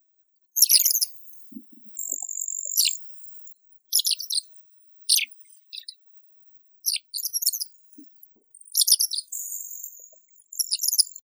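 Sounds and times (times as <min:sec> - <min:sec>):
Mongolian lark Melanocorypha mongolica: 0:00.6 - 0:01.1, 0:02.0 - 0:03.0, 0:03.9 - 0:04.5, 0:05.1 - 0:06.0, 0:06.8 - 0:07.7, 0:08.7 - 0:11.2.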